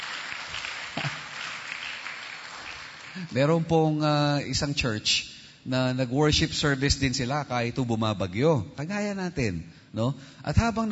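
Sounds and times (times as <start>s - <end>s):
church congregation applauding during a worship service: 0.0s - 3.6s
speech: 3.2s - 10.9s.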